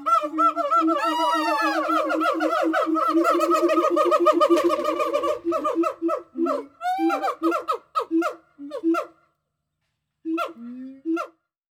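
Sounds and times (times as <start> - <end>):
gibbon hooting: 0.0 - 9.1.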